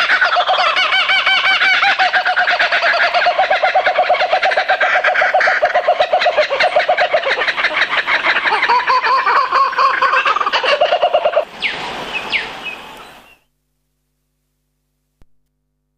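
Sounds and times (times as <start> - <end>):
laughing kookaburra laughter: 0.0 - 11.5.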